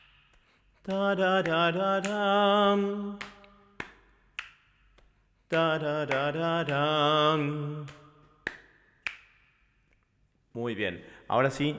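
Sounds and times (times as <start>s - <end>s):
finger snaps: 0.0s - 2.3s, 3.2s - 6.9s, 7.8s - 10.1s
speech: 0.8s - 3.4s, 5.5s - 8.0s, 10.6s - 11.7s.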